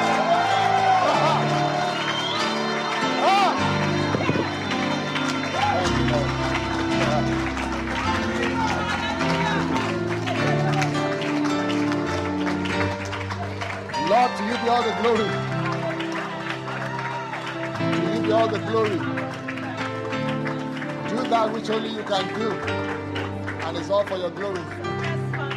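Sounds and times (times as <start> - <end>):
crowd shouting and whooping: 0.0 - 11.1, 16.0 - 18.9
crowd clapping: 0.0 - 25.5
low musical tones: 1.2 - 25.5
speech: 21.4 - 22.9, 23.9 - 24.9.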